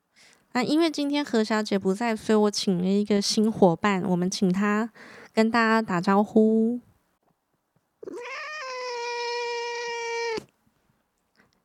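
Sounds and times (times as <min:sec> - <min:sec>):
speech: 0:00.5 - 0:06.9
cat meowing: 0:08.0 - 0:10.5.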